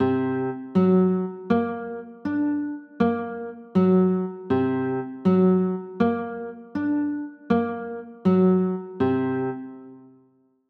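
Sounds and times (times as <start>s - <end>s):
D7 sharp 9 chords: 0.0s - 10.1s.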